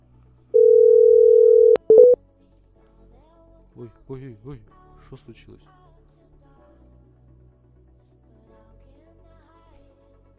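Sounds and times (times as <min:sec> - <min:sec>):
short higher telephone beeps: 0:00.6 - 0:02.2
telephone dial tone while placing a call: 0:00.6 - 0:02.2
speech: 0:03.8 - 0:05.8.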